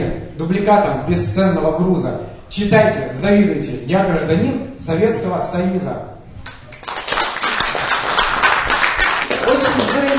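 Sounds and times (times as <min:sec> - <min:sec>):
speech: 0:00.4 - 0:06.2
audience applause after a poetry reading: 0:06.7 - 0:10.1.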